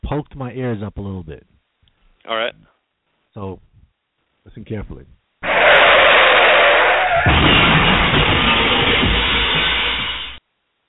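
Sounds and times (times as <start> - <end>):
speech: 0.1 - 1.6, 2.3 - 2.7, 3.4 - 3.7, 4.5 - 5.7, 7.2 - 9.1
car crash sound effect: 5.4 - 10.4
car crash sound effect skid: 5.4 - 10.4.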